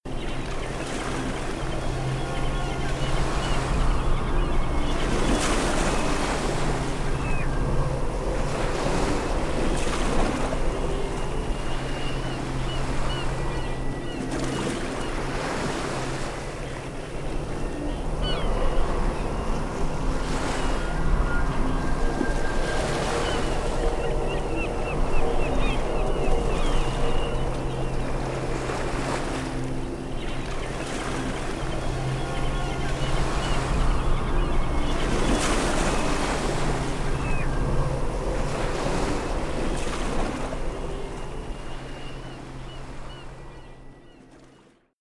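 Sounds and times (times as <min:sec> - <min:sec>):
ambient music: 0:00.0 - 0:44.9.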